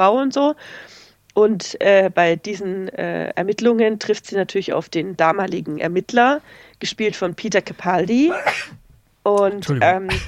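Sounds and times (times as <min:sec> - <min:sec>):
speech: 0:00.0 - 0:10.2
sneeze: 0:08.3 - 0:08.8.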